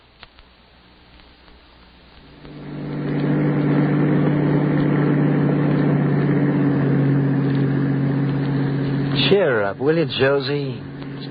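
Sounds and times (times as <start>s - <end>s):
bus engine rumbling: 2.2s - 11.2s
speech: 9.8s - 10.8s.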